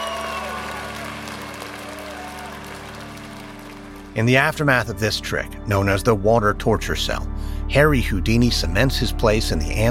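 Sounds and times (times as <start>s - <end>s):
crowd applause: 0.0s - 4.5s
speech: 4.2s - 9.8s.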